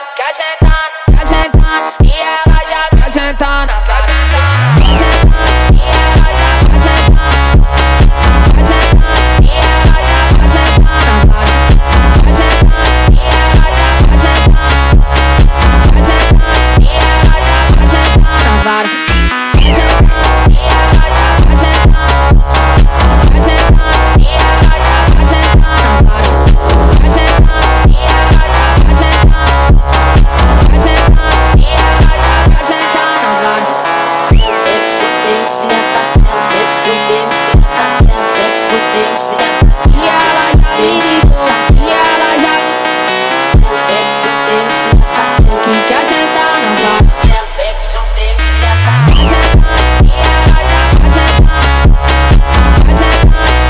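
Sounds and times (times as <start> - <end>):
sped up song: 0.4 - 53.6.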